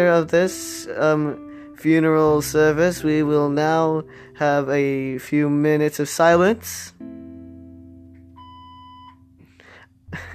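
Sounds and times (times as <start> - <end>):
speech: 0.0 - 7.2
recorded beep: 8.2 - 9.4.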